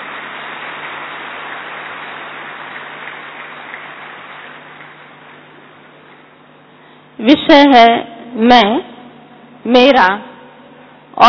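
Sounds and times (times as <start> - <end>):
audience applause: 0.0 - 5.6
speech: 7.2 - 8.9, 9.6 - 10.3.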